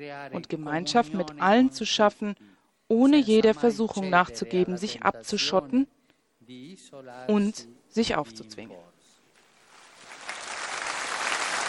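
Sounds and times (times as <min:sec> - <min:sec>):
speech: 0:00.0 - 0:08.9
audience applause: 0:09.7 - 0:11.6.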